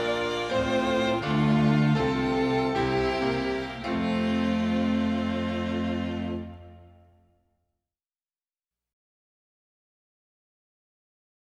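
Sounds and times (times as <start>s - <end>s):
instrumental hymn music: 0.0s - 7.2s.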